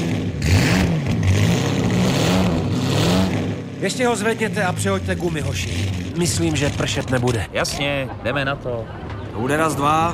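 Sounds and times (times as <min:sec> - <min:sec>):
car engine revving as the throttle is pressed: 0:00.0 - 0:07.4
speech: 0:03.8 - 0:10.1.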